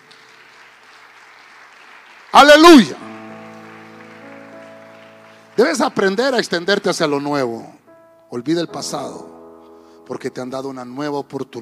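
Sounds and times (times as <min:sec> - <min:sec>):
audience clapping: 0:00.0 - 0:07.3
speech: 0:02.4 - 0:03.0, 0:05.6 - 0:09.4, 0:10.1 - 0:11.6.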